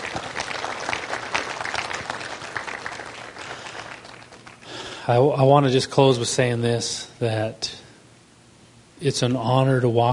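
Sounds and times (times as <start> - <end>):
audience applause: 0.0 - 4.8
speech: 5.1 - 7.8, 9.0 - 10.1.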